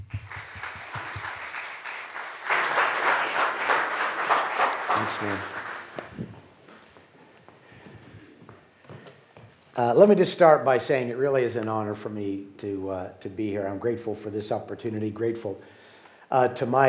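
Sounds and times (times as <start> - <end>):
audience applause welcoming a speaker to a talk on marriage: 0.0 - 6.2
speech: 5.1 - 5.6, 9.8 - 16.8.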